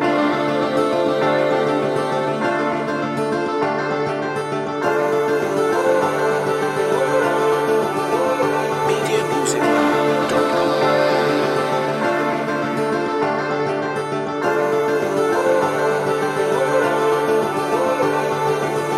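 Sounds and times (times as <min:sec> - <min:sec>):
tribal trip hop music: 0:00.1 - 0:18.9.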